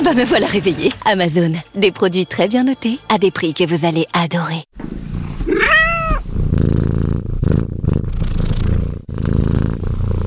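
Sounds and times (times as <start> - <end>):
speech: 0.1 - 5.7
loud steady low cat purring: 5.0 - 10.2
short rising-and-falling feline cry: 5.5 - 6.2.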